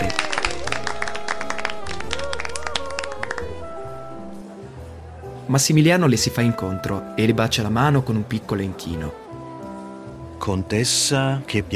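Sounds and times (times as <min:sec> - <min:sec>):
audience applauding: 0:00.0 - 0:04.4
speech: 0:05.5 - 0:09.2, 0:10.4 - 0:11.7.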